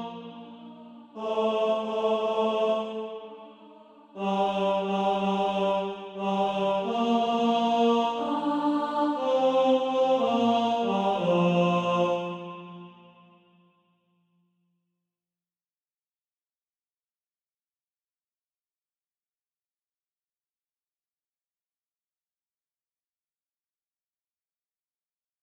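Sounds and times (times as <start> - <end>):
tenor SATB practice part: 0.0 - 12.9.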